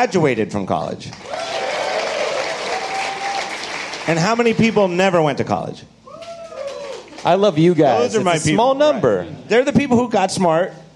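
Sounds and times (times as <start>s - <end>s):
speech: 0.0s - 1.6s, 4.1s - 5.9s, 7.2s - 10.8s
audience clapping: 1.1s - 5.2s, 6.1s - 7.6s.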